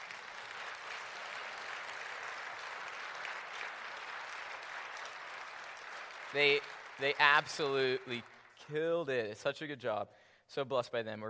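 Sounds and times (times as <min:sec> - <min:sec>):
audience applause: 0:00.0 - 0:08.6
speech: 0:06.3 - 0:11.2.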